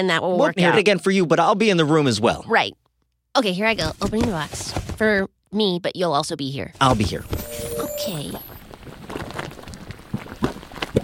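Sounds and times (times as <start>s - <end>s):
speech: 0.0s - 2.8s, 3.4s - 8.5s
liquid bubbling and gurgling: 7.4s - 11.0s.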